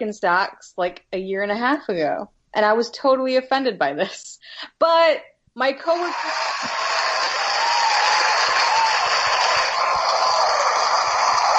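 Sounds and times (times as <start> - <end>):
speech: 0.0 - 6.9
crowd cheering and applause: 5.9 - 11.5.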